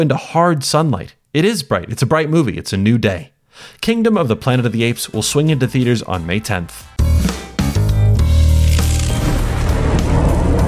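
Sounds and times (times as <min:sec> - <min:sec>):
speech: 0:00.0 - 0:07.4
lightning-round sound effect sting: 0:08.4 - 0:10.6
heavy sustained low tonal roar: 0:09.2 - 0:10.6.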